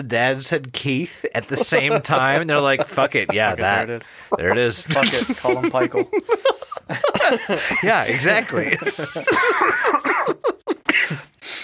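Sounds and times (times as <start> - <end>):
speech: 0.0 - 10.5
laughter: 1.4 - 11.2
cough: 9.3 - 10.3.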